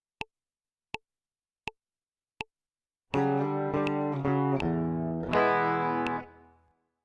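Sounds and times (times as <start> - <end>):
guitar intro: 3.2 - 6.6.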